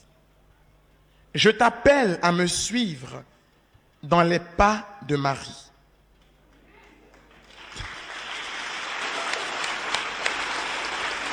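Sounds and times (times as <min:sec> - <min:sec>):
speech: 0:01.4 - 0:03.3, 0:04.0 - 0:05.7
audience applause: 0:07.1 - 0:11.3.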